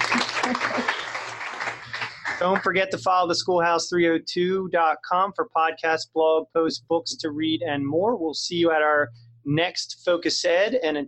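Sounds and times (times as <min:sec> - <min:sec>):
studio audience applause: 0:00.0 - 0:02.8
speech: 0:02.4 - 0:11.0.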